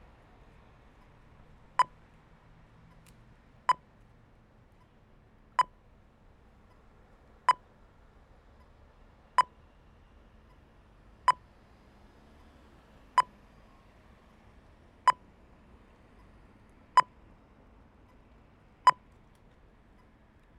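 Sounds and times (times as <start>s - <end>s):
New Zealand pedestrian traffic signal: 1.7s - 1.9s, 5.5s - 5.8s, 9.3s - 9.6s, 13.1s - 13.3s, 16.2s - 17.2s, 18.8s - 19.1s.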